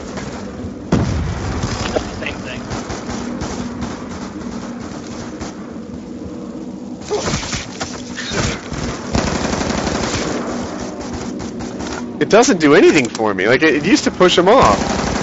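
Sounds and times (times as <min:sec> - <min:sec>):
video game rapid automatic gunfire: 0:00.0 - 0:05.8, 0:07.1 - 0:12.5, 0:13.6 - 0:15.2
heavy booming hits in a video game: 0:00.9 - 0:02.7
speech: 0:12.3 - 0:15.0.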